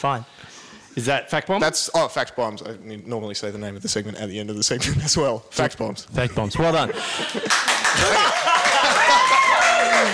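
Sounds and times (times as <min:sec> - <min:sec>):
speech: 0:00.0 - 0:00.4, 0:01.0 - 0:10.1
laughter: 0:06.2 - 0:10.1
audience applause: 0:07.1 - 0:10.1.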